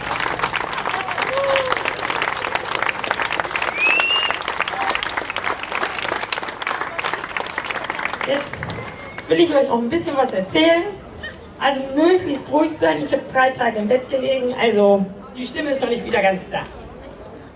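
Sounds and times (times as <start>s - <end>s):
audience applause: 0.0s - 9.2s
speech: 9.3s - 11.0s, 11.6s - 16.8s.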